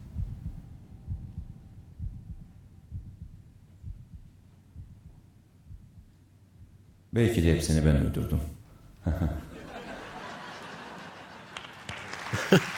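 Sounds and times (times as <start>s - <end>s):
heartbeat: 0.0s - 7.1s
faint droning hum: 0.0s - 11.4s
speech: 7.1s - 9.4s
laughter: 9.0s - 12.7s.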